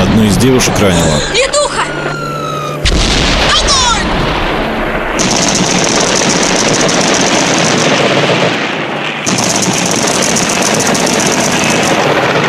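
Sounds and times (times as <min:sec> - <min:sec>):
speech: 0:00.2 - 0:01.7
machine gun fire in battle: 0:02.9 - 0:12.4.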